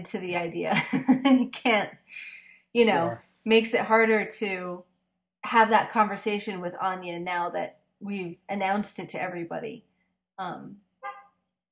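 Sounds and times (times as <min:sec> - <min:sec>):
speech: 0:00.0 - 0:10.8
car horn beeping: 0:11.0 - 0:11.3.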